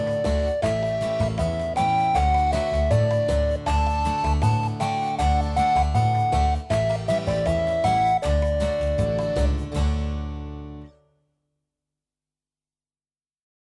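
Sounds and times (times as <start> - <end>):
melody: 0.0 - 10.8.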